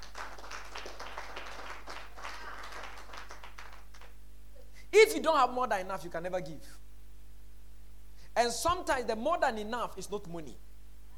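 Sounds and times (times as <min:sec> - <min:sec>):
audience clapping: 0:00.0 - 0:04.2
speech: 0:04.9 - 0:06.8, 0:08.4 - 0:10.6.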